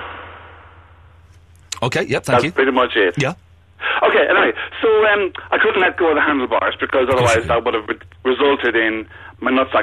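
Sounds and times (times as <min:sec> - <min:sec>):
speech: 0:01.8 - 0:03.4, 0:04.1 - 0:09.8
person imitating a scream of pain: 0:07.1 - 0:07.6.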